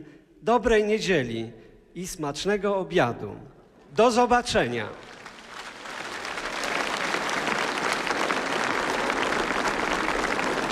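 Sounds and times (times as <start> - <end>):
speech: 0.0 - 5.2
crowd applause: 5.0 - 10.7.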